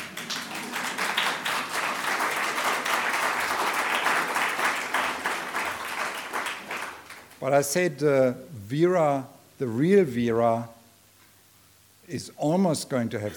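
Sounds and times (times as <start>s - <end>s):
audience applause at the end of a lecture: 0.0s - 7.4s
speech: 7.4s - 10.8s, 12.1s - 13.3s.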